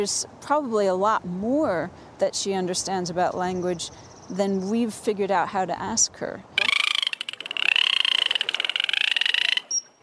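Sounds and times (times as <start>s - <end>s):
speech: 0.0s - 6.6s
dolphin chirps and clicks from blowholes: 6.6s - 10.0s.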